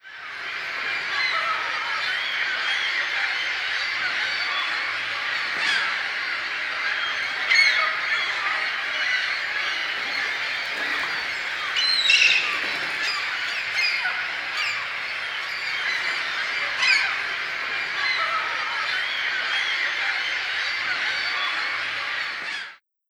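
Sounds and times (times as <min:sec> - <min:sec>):
seagulls in cities: 0:00.0 - 0:22.8.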